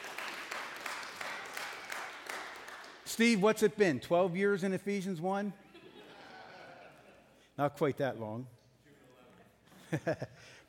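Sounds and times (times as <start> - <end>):
audience applause: 0.0 - 3.0
speech: 3.1 - 5.6, 7.6 - 8.6, 9.9 - 10.6
laughter: 5.6 - 7.4, 9.7 - 10.6.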